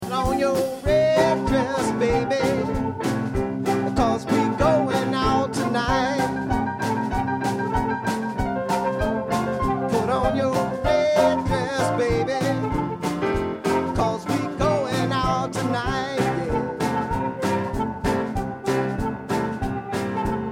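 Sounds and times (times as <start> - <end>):
blues music: 0.0 - 20.5.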